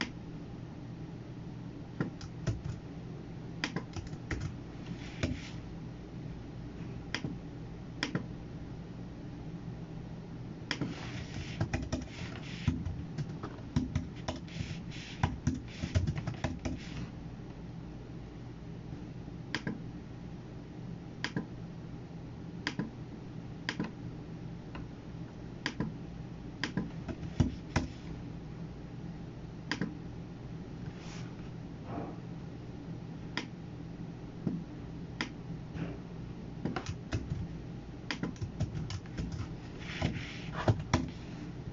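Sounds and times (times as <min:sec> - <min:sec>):
steady low hum: 0:00.0 - 0:41.6
clicks and tapping while working at a computer: 0:02.0 - 0:02.8, 0:03.6 - 0:04.6, 0:10.7 - 0:17.0, 0:25.6 - 0:26.0, 0:26.6 - 0:28.0, 0:36.6 - 0:37.5, 0:38.1 - 0:41.2.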